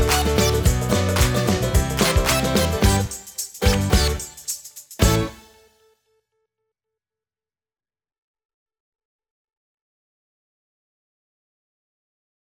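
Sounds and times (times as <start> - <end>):
instrumental music: 0.0 - 5.7.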